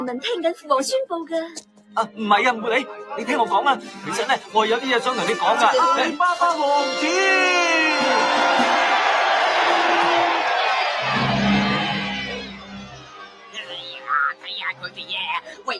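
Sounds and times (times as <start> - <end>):
speech: 0.0 - 8.8
crowd cheering: 6.8 - 13.6.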